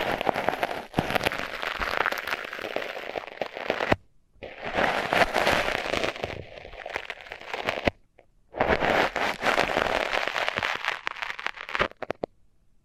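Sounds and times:
microphones under tape crackling and popping: 0.0s - 12.3s.

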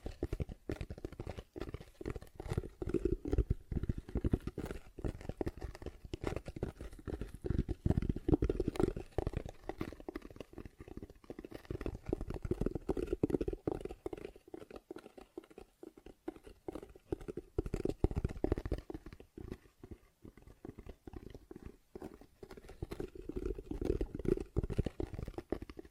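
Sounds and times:
rapid tapping and scratching: 0.0s - 25.9s.

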